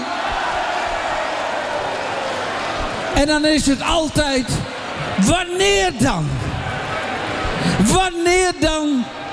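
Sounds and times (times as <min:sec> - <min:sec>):
audience applause: 0:00.0 - 0:03.2
speech: 0:03.2 - 0:06.4, 0:07.7 - 0:09.2.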